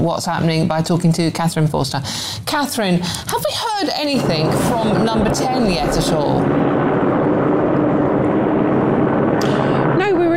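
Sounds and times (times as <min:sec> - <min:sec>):
speech: 0:00.0 - 0:06.7
helicopter hovering overhead: 0:04.1 - 0:10.3.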